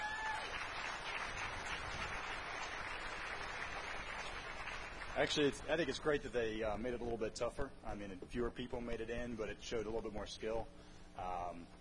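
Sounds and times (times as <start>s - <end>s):
audience applause: 0.0s - 5.6s
speech: 5.2s - 11.7s.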